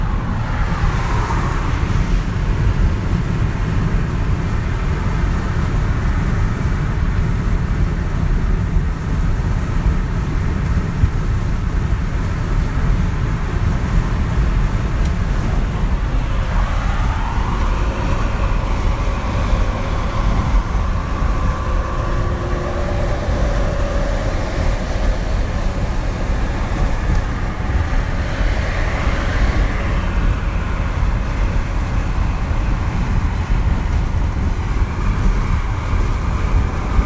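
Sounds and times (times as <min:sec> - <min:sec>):
car driving down a freeway: 0:00.0 - 0:37.0
tire and wind noise: 0:00.0 - 0:37.0.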